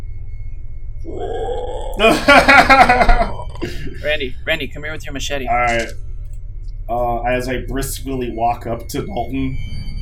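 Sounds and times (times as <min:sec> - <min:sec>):
voice imitating zombie groan: 0:01.1 - 0:02.3, 0:03.2 - 0:04.0
laughter: 0:02.0 - 0:04.2
speech: 0:02.0 - 0:06.0, 0:06.9 - 0:09.8.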